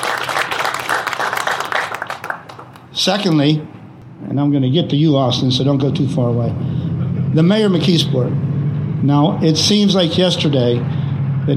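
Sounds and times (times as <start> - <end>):
audience applause: 0.0 - 2.9
speech: 3.0 - 6.7, 7.3 - 11.5.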